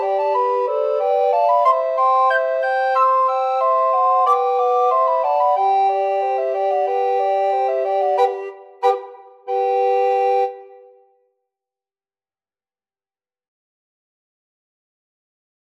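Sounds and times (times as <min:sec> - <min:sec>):
suite for recorders: 0:00.0 - 0:10.9.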